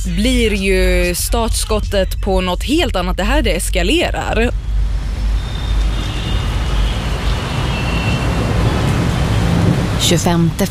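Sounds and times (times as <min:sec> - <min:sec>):
speech: 0:00.0 - 0:04.6, 0:10.1 - 0:10.6
low traffic rumble: 0:00.0 - 0:10.6
rain over a city street: 0:05.7 - 0:10.6.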